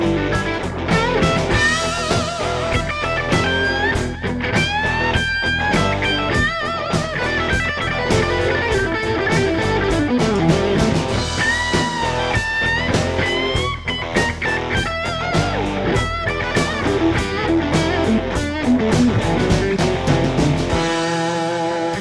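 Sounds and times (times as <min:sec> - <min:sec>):
Heritage H150 electric guitar with Doyle Coils Tru Clones pickups: 0:00.0 - 0:21.9.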